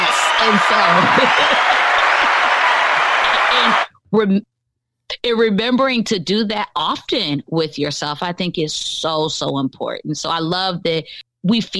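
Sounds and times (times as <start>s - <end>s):
canned applause: 0.0s - 3.9s
laughter: 0.0s - 3.9s
people whooping: 0.0s - 3.9s
speech: 0.4s - 2.4s, 3.5s - 4.5s, 5.1s - 11.7s.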